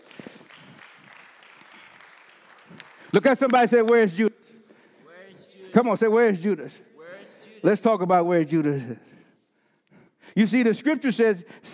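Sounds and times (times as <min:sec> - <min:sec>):
audience clapping hands: 0:00.0 - 0:04.3
speech: 0:03.1 - 0:04.3, 0:05.8 - 0:06.9, 0:07.6 - 0:09.1, 0:10.4 - 0:11.7.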